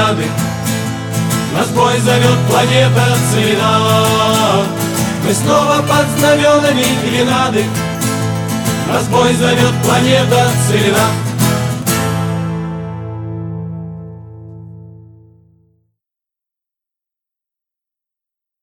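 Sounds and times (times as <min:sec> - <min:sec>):
national anthem: 0:00.0 - 0:14.0.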